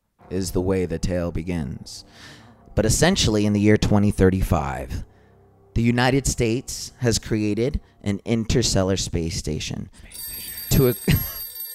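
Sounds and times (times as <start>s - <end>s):
speech: 0.3s - 5.1s, 5.8s - 11.4s
alarm: 10.2s - 11.7s.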